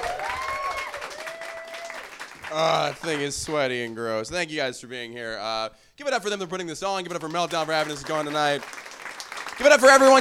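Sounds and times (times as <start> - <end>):
drawn-out cheer or whistle: 0.0 - 2.1
crowd applauding: 0.0 - 3.6, 7.0 - 10.2
speech: 2.5 - 8.8, 9.6 - 10.2.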